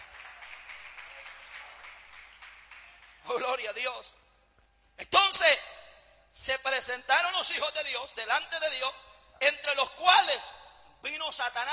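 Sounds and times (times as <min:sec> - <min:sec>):
audience applause: 0:00.0 - 0:03.2
speech: 0:03.3 - 0:04.2, 0:05.0 - 0:11.7.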